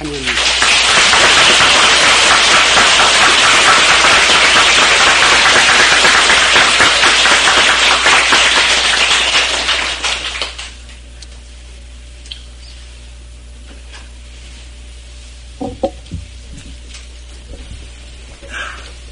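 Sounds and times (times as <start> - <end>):
audience applause: 0.0 - 10.8.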